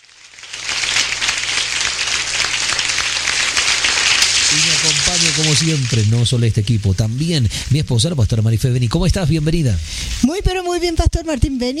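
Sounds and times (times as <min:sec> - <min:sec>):
crowd applauding: 0:00.2 - 0:06.2
speech: 0:04.8 - 0:11.7.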